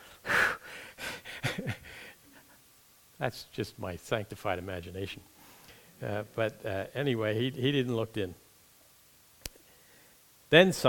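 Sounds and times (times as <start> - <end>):
voice imitating a runner panting after a sprint: 0.0 - 2.6
speech: 3.2 - 5.4, 6.0 - 8.4, 10.5 - 10.8.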